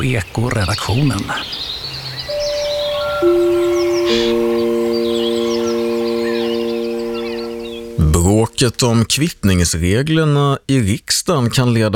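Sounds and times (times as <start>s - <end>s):
speech: 0.0s - 1.8s, 3.2s - 4.2s, 8.6s - 11.9s
birdsong: 0.0s - 8.9s
sustained layered electronic tones: 2.3s - 8.6s.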